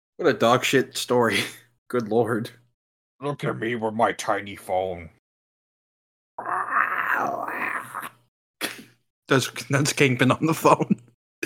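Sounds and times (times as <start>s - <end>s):
speech: 0.2s - 2.6s, 3.2s - 5.2s, 7.2s - 7.6s, 9.3s - 11.4s
person making monster growls with their voice: 6.4s - 8.3s.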